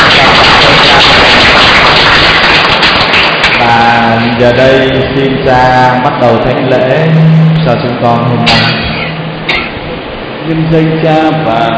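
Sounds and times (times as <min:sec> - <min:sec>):
audience applauding: 0:00.0 - 0:04.0
speech: 0:04.4 - 0:08.9, 0:10.5 - 0:11.7.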